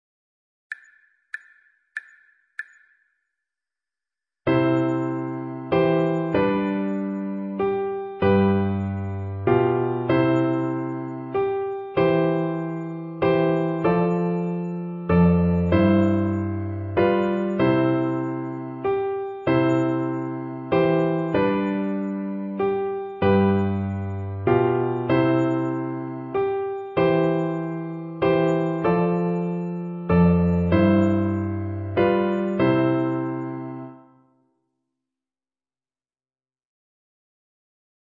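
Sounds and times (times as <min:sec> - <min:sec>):
simple piano playing: 0:04.5 - 0:34.2.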